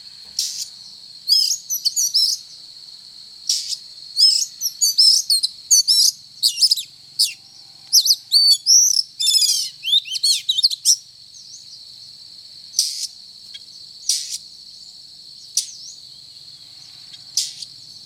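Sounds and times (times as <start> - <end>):
Oriental magpie-robin singing whistles: 1.3 - 2.4, 3.5 - 11.0.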